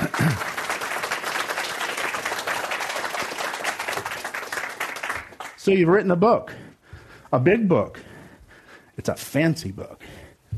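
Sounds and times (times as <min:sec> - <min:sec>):
crowd applause: 0:00.0 - 0:05.6
speech: 0:05.6 - 0:06.6, 0:07.3 - 0:08.0, 0:09.0 - 0:10.1.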